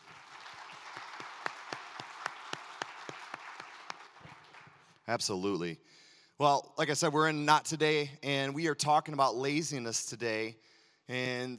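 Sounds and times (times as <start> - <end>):
audience applause: 0.0 - 4.9
speech: 5.1 - 11.5.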